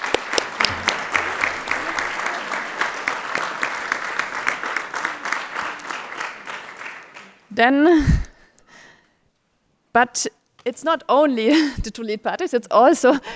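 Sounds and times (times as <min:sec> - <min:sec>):
audience applause: 0:00.0 - 0:07.4
speech: 0:07.6 - 0:08.2, 0:10.0 - 0:13.3.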